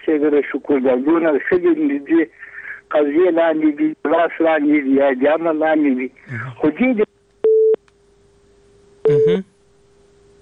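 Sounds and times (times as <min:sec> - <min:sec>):
speech: 0:00.1 - 0:07.1, 0:09.3 - 0:09.5
telephone busy tone after a call cuts off: 0:07.4 - 0:07.8, 0:09.0 - 0:09.4.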